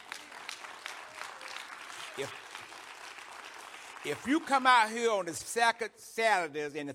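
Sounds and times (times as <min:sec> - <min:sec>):
church audience applause: 0:00.0 - 0:05.2
speech: 0:02.2 - 0:02.4, 0:04.0 - 0:06.9.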